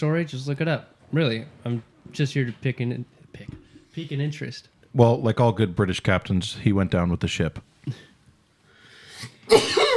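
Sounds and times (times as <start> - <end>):
speech: 0.0 - 8.1, 9.2 - 9.8
person sneezing: 9.1 - 9.9.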